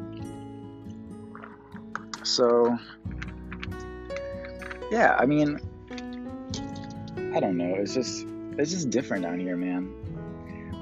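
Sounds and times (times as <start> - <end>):
sipping water: 1.2 - 7.3
speech: 2.2 - 3.2, 4.9 - 5.7, 7.2 - 10.0.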